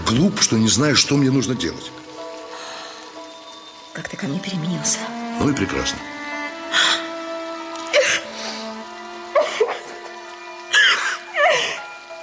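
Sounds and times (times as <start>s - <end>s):
speech: 0.1s - 2.0s, 4.0s - 6.8s
woman sobbing in halting bursts with catching breaths: 9.4s - 10.1s, 10.7s - 12.0s.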